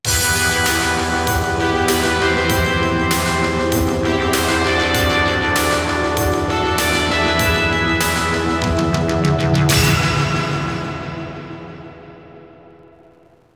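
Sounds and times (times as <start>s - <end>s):
strings in G sharp: 0.1s - 13.0s.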